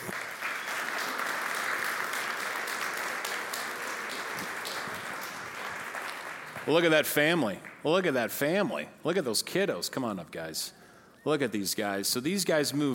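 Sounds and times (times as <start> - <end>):
audience applause welcoming a family onto a church stage: 0.0 - 6.8
speech: 6.6 - 12.9.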